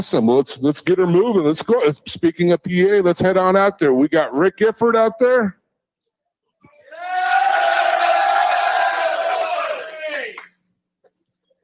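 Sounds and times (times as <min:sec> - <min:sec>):
speech: 0:00.0 - 0:05.6
excited crowd cheering: 0:06.8 - 0:10.5.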